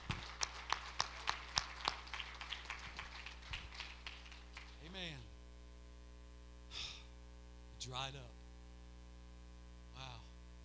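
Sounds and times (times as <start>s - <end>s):
audience clapping hands in a reverberant room: 0.0s - 5.1s
speech: 7.9s - 8.4s.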